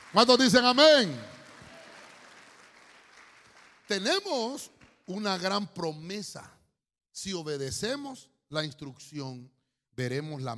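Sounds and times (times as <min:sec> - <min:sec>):
audience clapping: 0:00.0 - 0:05.6
speech: 0:00.1 - 0:01.3, 0:03.9 - 0:06.6, 0:07.2 - 0:10.5.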